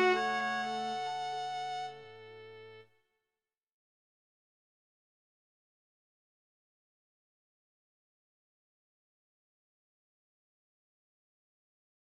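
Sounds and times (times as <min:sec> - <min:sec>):
quintet playing: 0:00.0 - 0:02.6.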